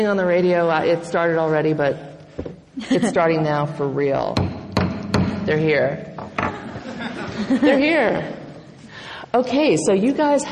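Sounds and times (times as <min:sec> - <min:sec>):
speech: 0:00.0 - 0:04.5, 0:05.5 - 0:06.6, 0:07.4 - 0:08.4, 0:09.3 - 0:10.5
laughter: 0:02.8 - 0:03.3, 0:06.5 - 0:08.7
gavel banging: 0:04.3 - 0:06.7.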